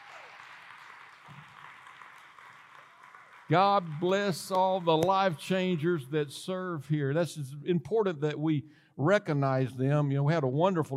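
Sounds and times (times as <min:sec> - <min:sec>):
audience clapping: 0:00.0 - 0:06.2
speech: 0:03.5 - 0:10.9.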